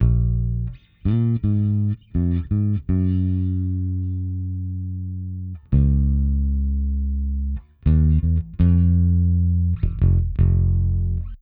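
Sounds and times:
hip-hop bass: 0:00.0 - 0:11.4.

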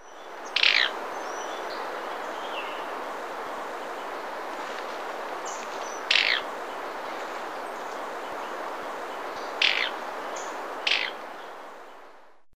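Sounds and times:
steady background hiss: 0:00.0 - 0:12.4
Rufous-crowned Tody-Flycatcher giving buzzy high calls: 0:00.4 - 0:01.4, 0:05.9 - 0:06.5, 0:09.5 - 0:10.0, 0:10.8 - 0:11.2.

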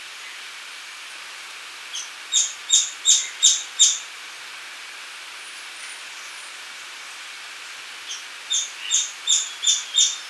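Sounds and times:
streak-capped treehunter calls: 0:02.0 - 0:04.0, 0:08.1 - 0:10.2.

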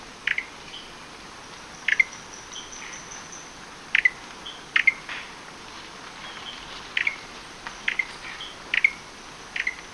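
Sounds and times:
faint steady hiss: 0:00.0 - 0:09.9
gray-breasted wood-wren chattering calls: 0:00.2 - 0:00.9, 0:01.7 - 0:05.3, 0:06.2 - 0:09.9.

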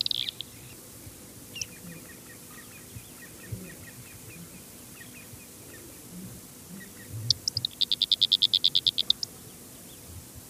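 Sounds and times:
Fork-tailed flycatcher Tyrannus savana ticking calls: 0:00.0 - 0:00.8, 0:01.5 - 0:05.6, 0:06.8 - 0:09.5.

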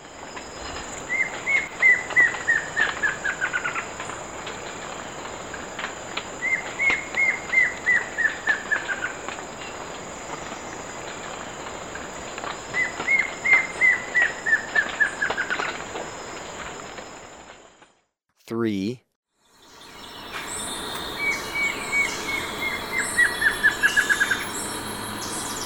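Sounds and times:
plain antvireo singing in Ecuador: 0:00.2 - 0:04.2, 0:06.4 - 0:09.8, 0:12.5 - 0:15.8, 0:19.4 - 0:25.6.

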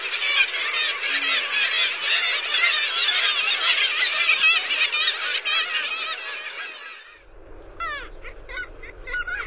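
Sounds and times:
Black-legged kittiwake calling chorus: 0:00.0 - 0:07.2.

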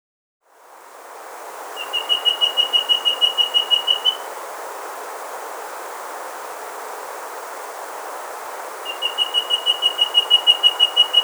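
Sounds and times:
rusty-breasted antpitta calling: 0:01.8 - 0:04.2, 0:08.9 - 0:11.2.

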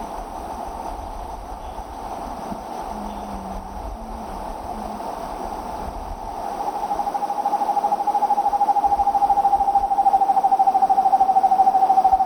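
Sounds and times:
Foothill Screech Owl trill: 0:07.1 - 0:12.2.

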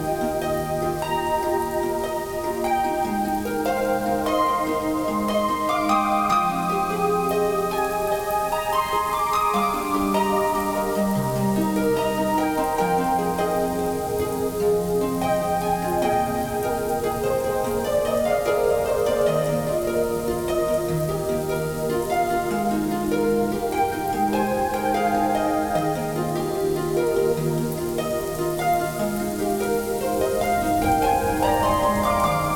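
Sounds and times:
rain: 0:00.0 - 0:32.5.

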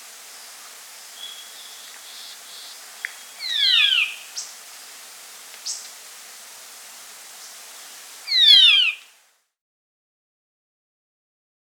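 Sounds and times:
band-tailed manakin whistled calls: 0:01.2 - 0:04.5, 0:08.2 - 0:09.1.

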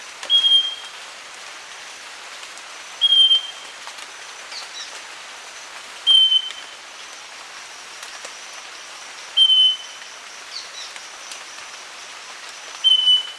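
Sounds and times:
Southern nightingale-wren giving clear whistled notes: 0:00.3 - 0:00.9, 0:03.0 - 0:03.6, 0:06.1 - 0:06.7, 0:09.4 - 0:10.0, 0:12.8 - 0:13.3.

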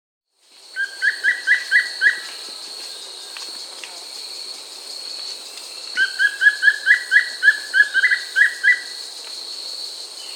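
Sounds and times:
wing-barred piprites Piprites chloris whistled notes in Peru: 0:00.8 - 0:02.3, 0:06.0 - 0:09.0.

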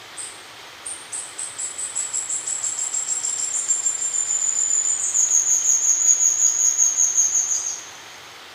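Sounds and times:
Red-faced Spinetail calling in South America: 0:00.2 - 0:08.4.

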